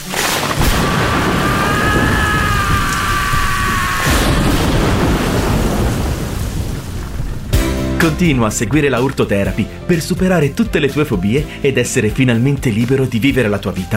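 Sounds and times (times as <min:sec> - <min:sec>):
thunderstorm with rain: 0:00.5 - 0:07.8
speech: 0:08.0 - 0:13.9.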